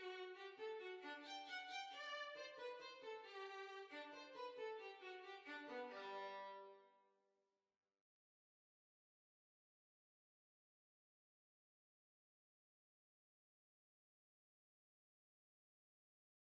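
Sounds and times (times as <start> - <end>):
violin: 0.0 - 6.9.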